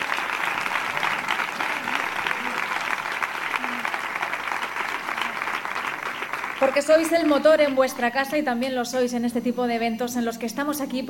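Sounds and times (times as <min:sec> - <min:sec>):
audience applause: 0:00.0 - 0:07.8
speech: 0:06.6 - 0:11.0.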